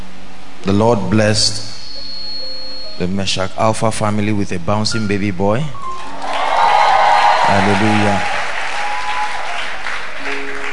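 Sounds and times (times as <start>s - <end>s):
speech: 0.6s - 1.8s, 3.0s - 5.8s, 7.5s - 8.4s
church congregation clapping celebrating a baby boy's dedication: 5.9s - 10.7s.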